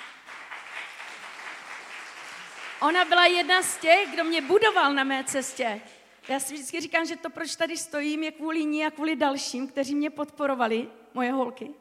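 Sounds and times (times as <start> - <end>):
audience applauding for a person seated in the crowd: 0.0 - 5.3
speech: 2.8 - 11.7.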